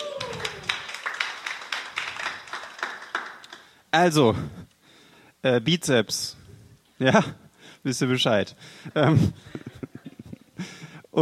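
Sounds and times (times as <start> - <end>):
audience applause: 0.0 - 3.7
speech: 3.9 - 4.6, 5.4 - 6.4, 7.0 - 9.6.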